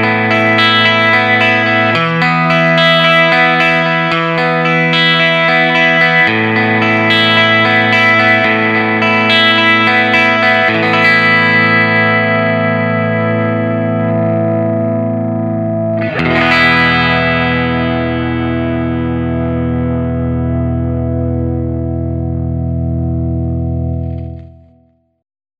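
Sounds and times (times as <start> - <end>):
slightly compressed electric guitar through a rectifier: 0.0 - 24.9.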